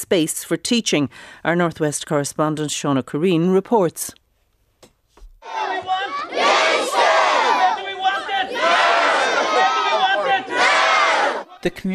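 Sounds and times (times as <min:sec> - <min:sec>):
speech: 0:00.1 - 0:04.2, 0:11.6 - 0:11.9
large crowd of protesters shouting in unison: 0:05.4 - 0:11.6.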